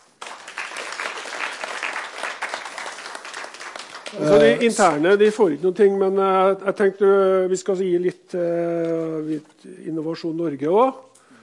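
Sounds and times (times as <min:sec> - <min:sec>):
audience applause: 0:00.0 - 0:04.8
speech: 0:04.1 - 0:11.1.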